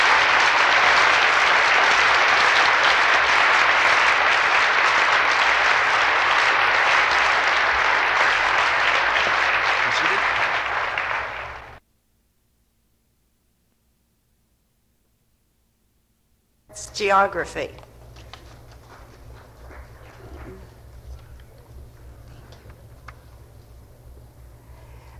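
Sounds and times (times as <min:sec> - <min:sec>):
applause at a Tanana Valley Community College graduation ceremony: 0:00.0 - 0:11.8
speech: 0:17.0 - 0:17.9.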